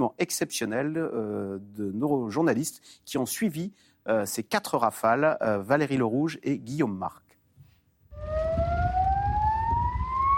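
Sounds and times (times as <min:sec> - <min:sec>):
speech: 0:00.0 - 0:07.2
shrill alarm siren at an air base: 0:08.2 - 0:10.3.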